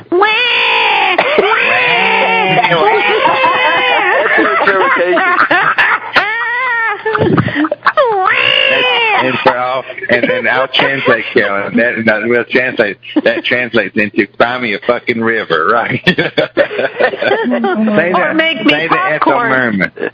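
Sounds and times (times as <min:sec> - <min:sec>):
cat meowing and yowling: 0:00.1 - 0:04.1, 0:08.0 - 0:09.2
laughter: 0:01.2 - 0:12.0, 0:15.8 - 0:20.1
speech: 0:05.0 - 0:05.4, 0:09.8 - 0:20.1.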